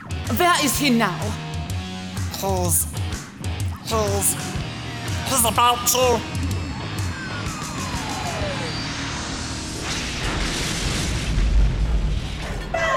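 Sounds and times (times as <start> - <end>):
speech: 0.3 - 1.4, 2.4 - 3.0, 3.9 - 4.6, 5.3 - 6.3
descending whine: 4.4 - 12.8
spaceship crash sound effect: 8.7 - 12.8.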